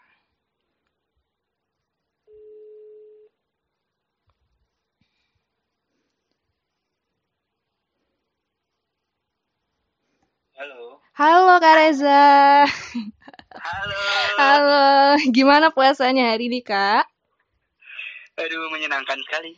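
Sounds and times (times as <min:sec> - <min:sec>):
telephone ringback tone: 0:02.3 - 0:03.3
speech: 0:10.6 - 0:17.1, 0:18.4 - 0:19.5.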